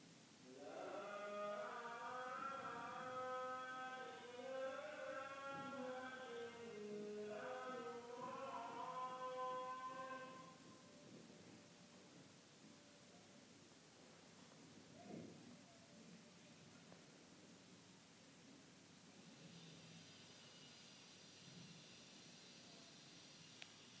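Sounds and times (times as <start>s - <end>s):
call to prayer in Delhi: 0.5s - 11.0s.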